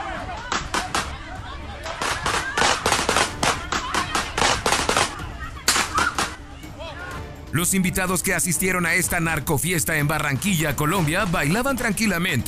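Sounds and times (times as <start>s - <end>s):
faint murmuring voices: 0.0s - 7.4s
rapid gunshots at a party: 0.4s - 1.2s, 1.9s - 6.4s
speech: 7.6s - 12.4s.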